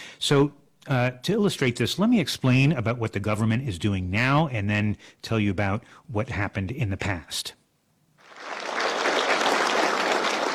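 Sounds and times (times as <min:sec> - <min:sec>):
speech: 0:00.2 - 0:07.6
executives applauding in a meeting hall: 0:08.2 - 0:10.5.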